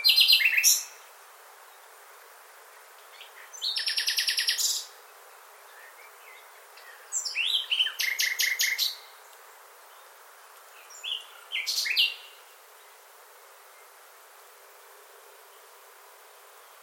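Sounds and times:
bird calling with thin whistle and sharp downslurred chirps: 3.6s - 4.9s, 7.1s - 9.0s, 11.0s - 12.3s.

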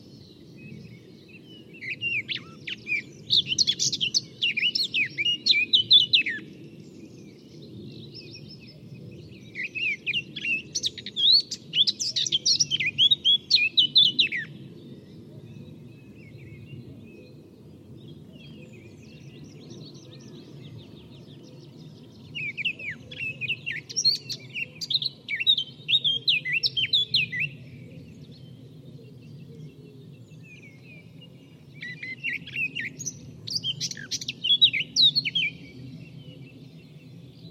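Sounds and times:
Eurasian Blackcap song: 1.3s - 6.5s, 9.3s - 14.6s, 18.4s - 27.6s, 30.4s - 35.8s.

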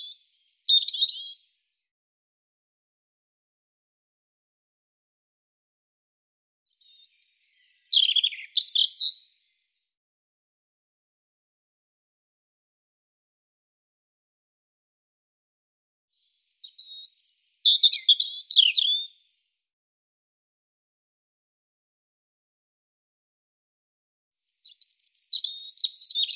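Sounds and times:
European robin song of high thin warbles and trills: 6.8s - 9.4s, 16.4s - 19.0s, 24.4s - 26.3s.

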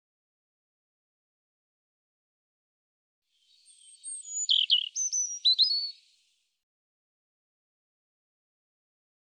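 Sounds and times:
European robin singing: 3.4s - 6.2s.

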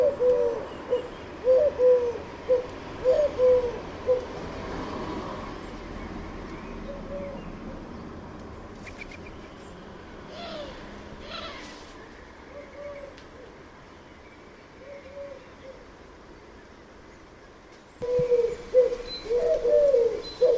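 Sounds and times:
bird calling with mellow cooing notes: 0.0s - 4.4s, 6.8s - 7.8s, 12.5s - 13.2s, 14.8s - 15.9s, 18.0s - 20.5s.

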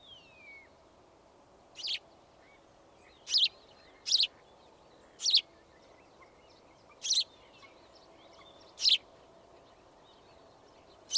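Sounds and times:
bird giving sharp high clicky chirps: 1.8s - 11.1s.

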